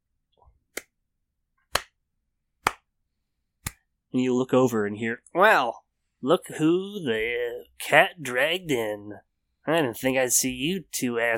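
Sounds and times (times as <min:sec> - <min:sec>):
slow hand clapping: 0:01.7 - 0:02.0, 0:02.6 - 0:02.9
speech: 0:04.1 - 0:11.3.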